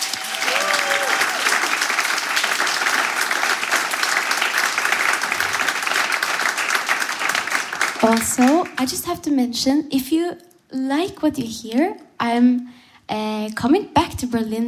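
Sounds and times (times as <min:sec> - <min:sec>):
audience applause: 0:00.0 - 0:08.8
speech: 0:08.0 - 0:14.6.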